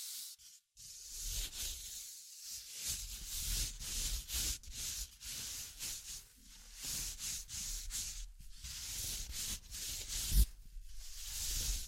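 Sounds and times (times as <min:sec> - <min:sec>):
scratching and tracing with dry sanding-like rubbing: 0:00.8 - 0:11.8.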